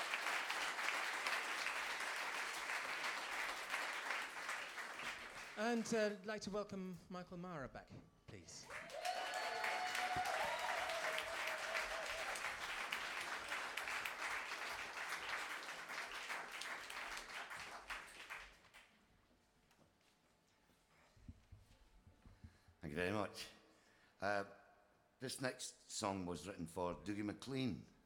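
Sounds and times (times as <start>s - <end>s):
audience applause at a live folk music concert: 0.0s - 5.6s, 8.7s - 18.8s
speech: 5.6s - 9.0s, 23.0s - 23.6s, 24.2s - 24.6s, 25.2s - 28.0s.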